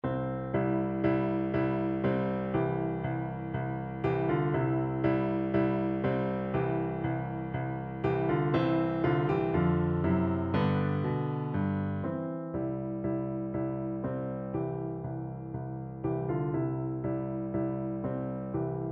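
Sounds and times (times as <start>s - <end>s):
piano duet: 0.0s - 18.9s.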